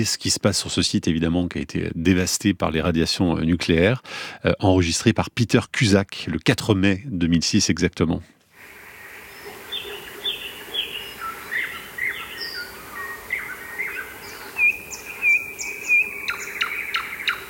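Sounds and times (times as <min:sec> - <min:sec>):
speech: 0:00.0 - 0:08.4
insect-like hum: 0:08.6 - 0:17.4
birds chirping and singing at Chernobyl site: 0:08.8 - 0:17.4.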